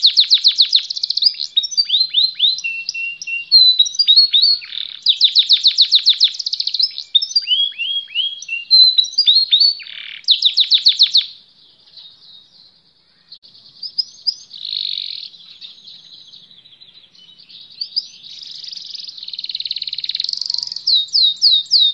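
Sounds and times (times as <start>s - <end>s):
canary singing: 0.0s - 21.9s.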